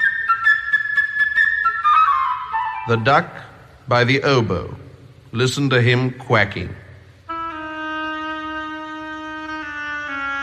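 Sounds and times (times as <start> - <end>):
flute playing a bird-like melody: 0.0 - 3.2, 7.3 - 10.4
speech: 2.9 - 6.8.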